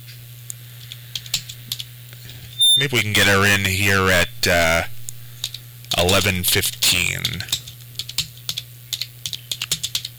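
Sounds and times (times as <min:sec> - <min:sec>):
steady low electrical hum: 0:00.0 - 0:09.0
speech: 0:02.8 - 0:04.9, 0:06.0 - 0:07.6
computer keyboard key clicks while typing a short note: 0:07.2 - 0:10.1.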